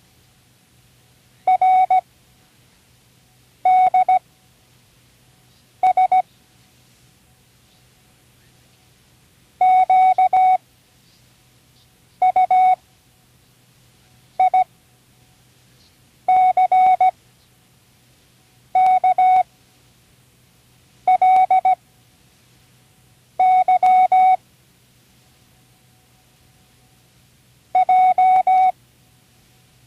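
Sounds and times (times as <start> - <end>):
Morse code: 1.5 - 2.0, 3.7 - 4.2, 5.8 - 6.3, 9.6 - 10.6, 12.2 - 12.8, 14.4 - 14.7, 16.3 - 17.2, 18.8 - 19.5, 21.1 - 21.8, 23.4 - 24.4, 27.8 - 28.7.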